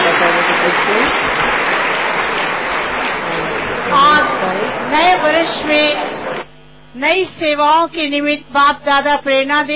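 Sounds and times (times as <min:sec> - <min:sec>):
audience applauding loudly during a bouquet presentation: 0:00.0 - 0:06.4
speech: 0:07.0 - 0:09.7.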